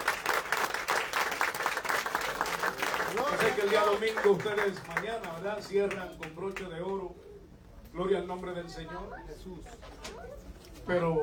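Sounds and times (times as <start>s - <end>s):
audience applauding: 0.0s - 6.0s
speech: 3.4s - 7.2s, 7.9s - 11.2s.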